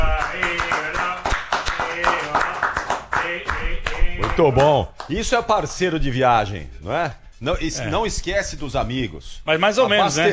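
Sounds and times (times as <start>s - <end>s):
applause: 0.0s - 5.2s
speech: 4.4s - 10.3s.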